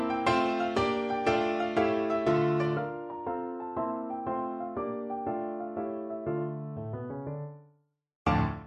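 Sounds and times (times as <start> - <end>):
tarantella piano piece: 0.0 - 7.7, 8.3 - 8.6.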